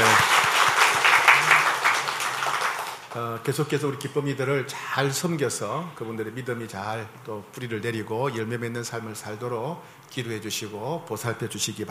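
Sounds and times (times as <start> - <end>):
audience applause: 0.0 - 3.2
speech: 3.2 - 11.8.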